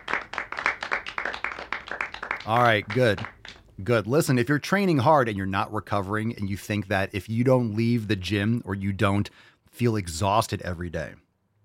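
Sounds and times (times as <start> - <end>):
golf clap: 0.0 - 3.8
speech: 2.4 - 11.2.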